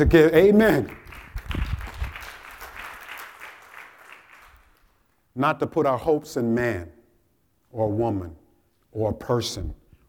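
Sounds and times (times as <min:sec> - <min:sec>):
speech: 0:00.0 - 0:01.0, 0:05.4 - 0:07.0, 0:07.7 - 0:08.4, 0:09.0 - 0:09.8
audience applause: 0:00.9 - 0:05.0.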